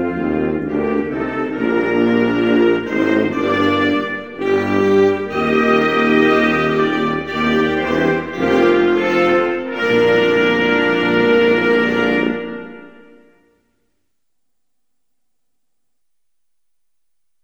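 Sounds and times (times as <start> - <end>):
national anthem: 0.0 - 13.4.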